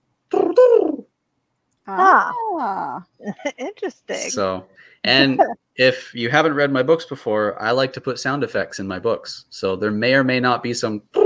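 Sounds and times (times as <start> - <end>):
voice imitating a dodo's pigeon-like call: 0.3 - 1.1, 1.9 - 4.4, 11.0 - 11.2
speech: 1.9 - 11.2.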